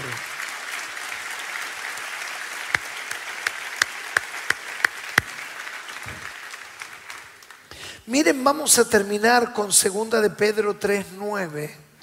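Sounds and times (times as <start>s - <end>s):
sharp louder rhythmic claps: 0.0s - 7.6s
audience applause: 0.0s - 7.7s
speech: 8.0s - 11.9s.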